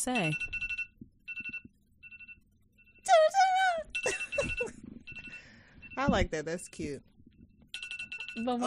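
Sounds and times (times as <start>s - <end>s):
speech: 0.0s - 0.6s, 6.0s - 7.1s, 8.4s - 8.6s
timer alarm beeping: 0.0s - 7.0s, 7.8s - 8.6s.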